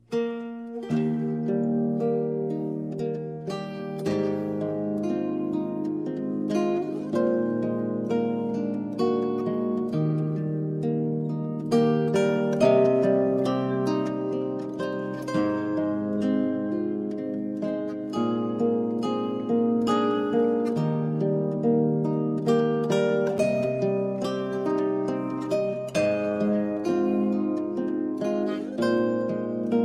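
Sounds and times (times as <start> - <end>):
zither piece in D major: 0.0 - 29.8.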